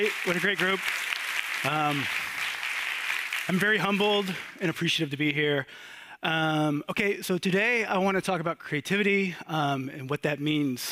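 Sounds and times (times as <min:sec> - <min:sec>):
speech: 0:00.0 - 0:02.3, 0:03.5 - 0:10.8
audience applause: 0:00.0 - 0:04.8.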